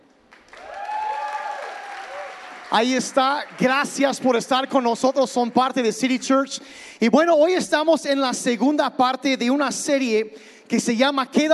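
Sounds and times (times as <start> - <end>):
church congregation at City Church Oaxaca applauding to welcome online viewers: 0.2 - 6.1
speech: 2.7 - 11.5.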